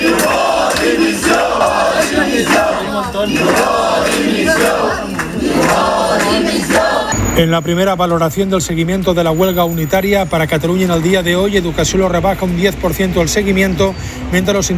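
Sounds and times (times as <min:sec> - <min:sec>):
protesters shouting and chanting demanding resignation: 0:00.0 - 0:07.4
speech: 0:07.4 - 0:14.7.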